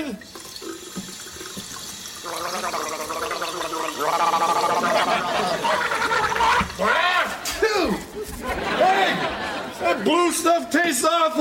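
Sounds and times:
gargling: 0:02.2 - 0:06.8
laughter: 0:04.0 - 0:10.5
speech: 0:10.0 - 0:11.3.

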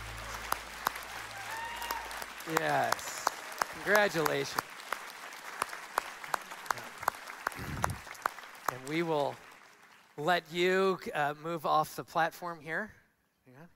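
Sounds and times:
audience round of applause: 0:00.0 - 0:10.4
speech: 0:02.5 - 0:03.2, 0:03.8 - 0:04.7, 0:08.8 - 0:09.4, 0:10.2 - 0:13.0.

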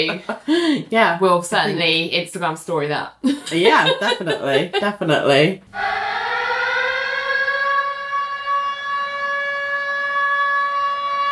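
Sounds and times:
laughter: 0:00.0 - 0:00.8, 0:03.2 - 0:05.2
speech: 0:00.0 - 0:06.0
siren wailing: 0:05.7 - 0:11.3.

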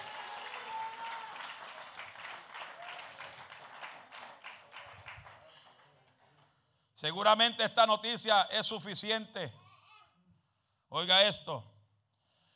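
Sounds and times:
audience applause: 0:00.0 - 0:06.3
speech: 0:07.0 - 0:09.6, 0:10.9 - 0:11.7.

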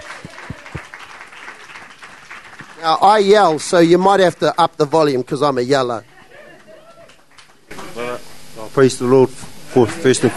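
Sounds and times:
audience applause greeting a guest at a gathering: 0:00.0 - 0:05.0
speech: 0:02.8 - 0:06.1, 0:08.8 - 0:10.3.

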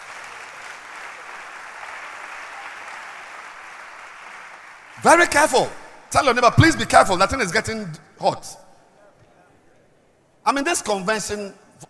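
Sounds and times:
audience clapping: 0:00.0 - 0:05.3
speech: 0:05.0 - 0:08.6, 0:10.4 - 0:11.8.

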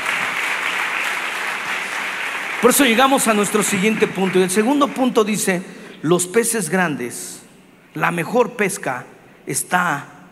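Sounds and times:
audience applause: 0:00.0 - 0:05.5
speech: 0:02.6 - 0:10.2.

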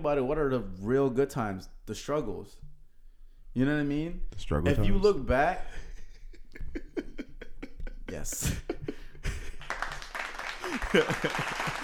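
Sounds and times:
speech: 0:00.0 - 0:02.7, 0:03.6 - 0:05.8, 0:08.1 - 0:09.4, 0:10.7 - 0:11.8
laughter: 0:05.7 - 0:11.8
audience clapping: 0:09.2 - 0:11.8.

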